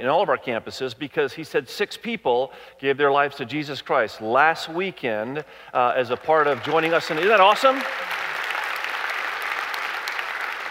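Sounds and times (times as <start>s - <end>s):
speech: 0.0s - 8.3s
church audience applause: 6.1s - 10.6s.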